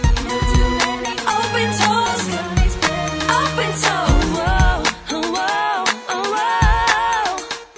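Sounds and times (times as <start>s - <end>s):
backing vocals track: 0.2s - 7.6s.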